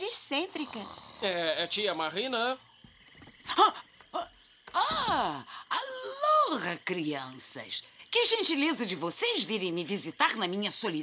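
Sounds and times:
speech: 0:00.3 - 0:02.7, 0:03.4 - 0:11.0
woman snoring loudly: 0:00.5 - 0:01.9.

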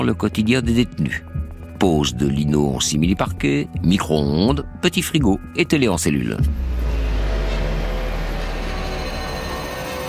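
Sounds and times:
speech: 0:00.0 - 0:06.7
scooter engine droning while ridden through Versailles: 0:06.5 - 0:10.0.

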